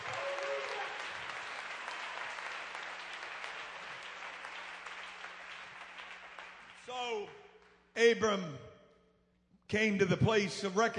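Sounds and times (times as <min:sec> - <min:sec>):
audience clapping: 0:00.0 - 0:07.9
speech: 0:06.9 - 0:07.4, 0:08.0 - 0:08.7, 0:09.7 - 0:10.9.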